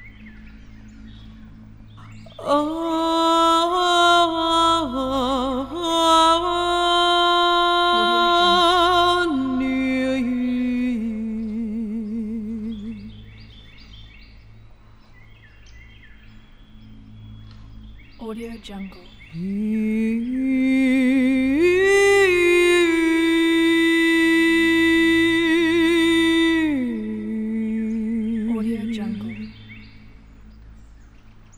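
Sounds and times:
shamanic woman chanting in the forest: 2.0 - 13.3, 18.2 - 29.8.

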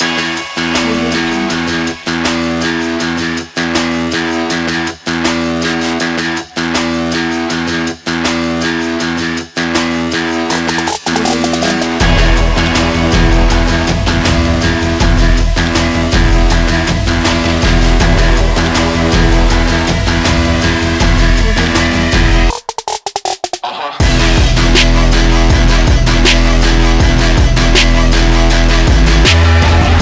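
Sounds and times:
trap rock music: 0.0 - 29.9.

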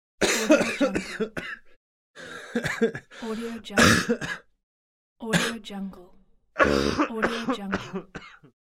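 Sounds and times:
man coughing: 0.2 - 3.2, 3.8 - 4.5, 6.6 - 8.5.

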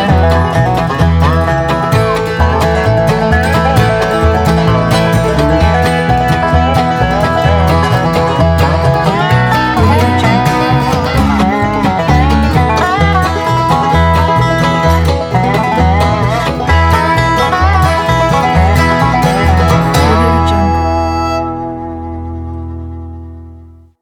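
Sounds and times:
upbeat bluegrass music: 0.0 - 24.0.

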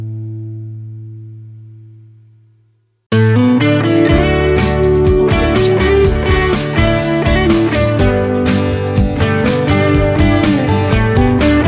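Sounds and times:
country folk music: 3.1 - 11.6.

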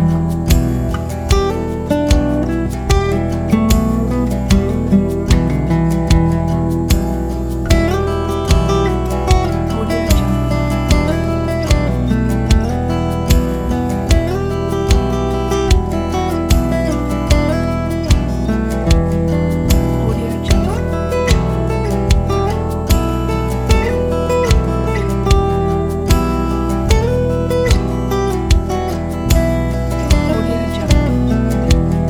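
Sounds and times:
western music loop: 0.0 - 32.0.

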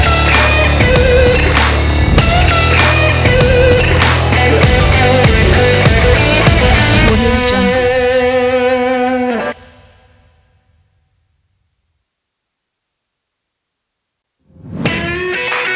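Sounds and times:
sport game big beat trailer music with guitar: 0.0 - 9.7, 14.6 - 15.7.

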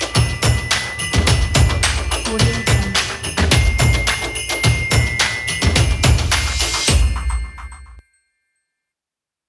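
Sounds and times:
hand claps: 0.0 - 7.0
bells jingling: 0.0 - 9.0.

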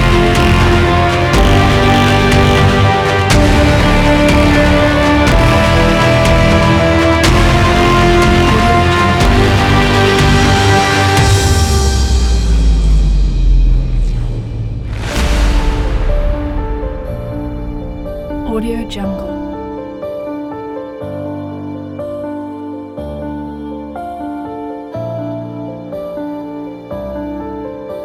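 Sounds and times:
hard electronic cinematic music: 0.0 - 20.7.

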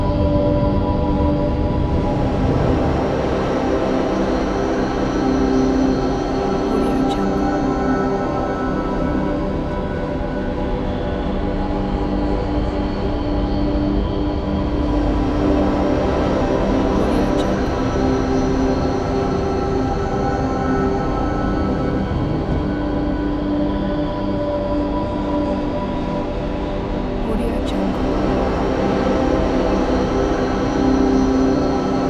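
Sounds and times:
cinematic ambient drone: 0.0 - 32.0.

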